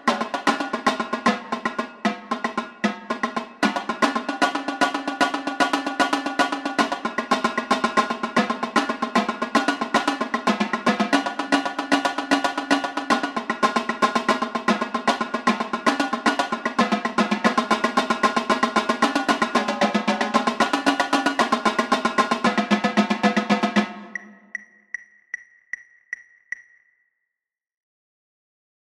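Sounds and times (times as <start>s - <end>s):
tenor drum flam sequence: 0.0s - 24.2s.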